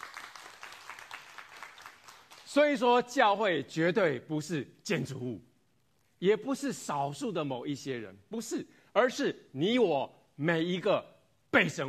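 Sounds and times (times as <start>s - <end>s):
church congregation clapping: 0.0s - 2.8s
speech: 2.6s - 5.5s, 6.2s - 11.8s.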